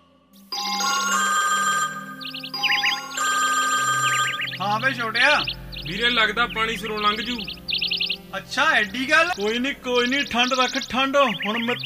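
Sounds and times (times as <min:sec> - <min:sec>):
electronic phone ringtone after a call is placed: 0:00.4 - 0:05.7
speech: 0:04.8 - 0:07.6, 0:08.3 - 0:11.8.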